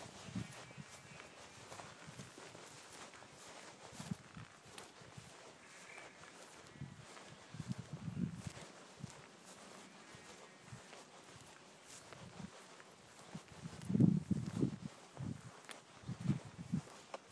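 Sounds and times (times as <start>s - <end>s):
footsteps walking with sheep: 0.0s - 17.3s
sheep: 4.8s - 13.4s.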